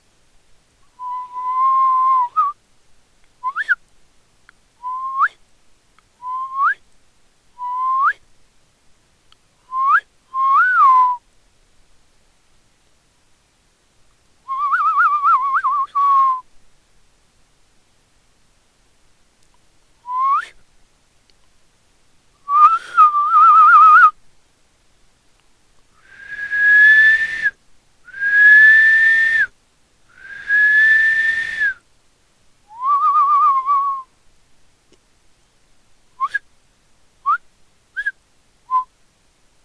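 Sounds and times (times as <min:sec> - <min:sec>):
person whistling: 0:01.0 - 0:02.6, 0:03.4 - 0:03.8, 0:04.8 - 0:05.4, 0:06.2 - 0:06.8, 0:07.6 - 0:08.2, 0:09.7 - 0:11.2, 0:14.5 - 0:16.4, 0:20.1 - 0:20.6, 0:22.5 - 0:24.1, 0:26.0 - 0:29.5, 0:30.2 - 0:31.8, 0:32.7 - 0:34.1, 0:36.2 - 0:36.4, 0:38.0 - 0:38.9.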